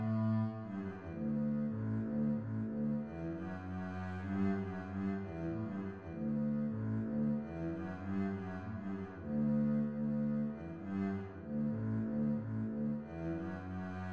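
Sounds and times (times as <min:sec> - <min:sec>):
bass: 0:00.0 - 0:14.1.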